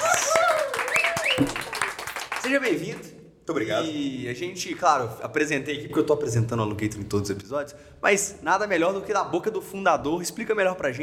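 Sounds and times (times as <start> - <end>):
round of applause: 0.0 - 3.1
speech: 1.4 - 1.7, 2.4 - 11.0.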